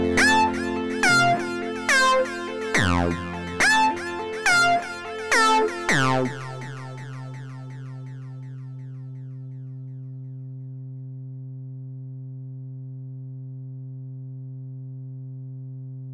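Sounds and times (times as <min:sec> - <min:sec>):
synth chord progression in A minor, E and F: 0:00.0 - 0:08.3.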